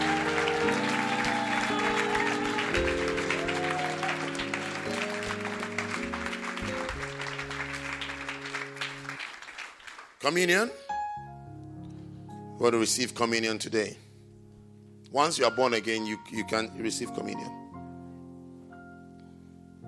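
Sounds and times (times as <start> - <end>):
keyboard or organ chords: 0.0 - 9.4, 10.4 - 19.8
audience applause: 0.0 - 10.3
speech: 10.3 - 10.8, 12.6 - 14.1, 15.1 - 17.6.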